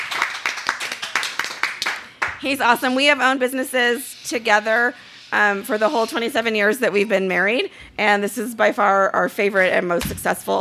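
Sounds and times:
hands clapping: 0.0s - 2.5s
speech: 2.4s - 10.5s.

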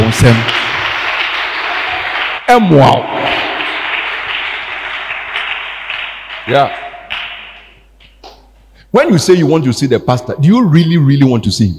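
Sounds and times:
audience clapping: 0.0s - 8.5s
speech: 0.1s - 0.6s, 2.5s - 3.2s, 6.4s - 6.8s, 8.9s - 11.7s.

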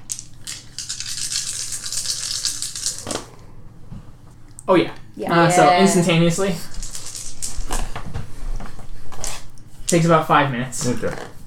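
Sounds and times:
five dice rolling: 0.1s - 3.2s, 6.7s - 7.8s
speech: 4.7s - 6.8s, 9.9s - 11.4s.

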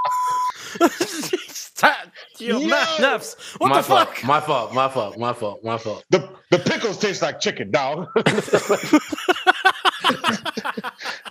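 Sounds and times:
censor bleep: 0.0s - 0.6s
laughter: 0.6s - 1.7s, 2.4s - 5.2s, 6.5s - 7.2s, 8.0s - 11.2s
speech: 0.7s - 9.3s.

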